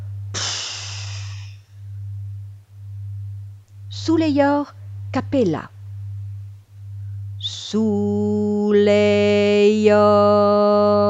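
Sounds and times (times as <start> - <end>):
low electronic hum: 0.0 - 11.0
breathing in and blowing out: 0.4 - 1.6
speech: 3.9 - 5.8, 7.7 - 11.0.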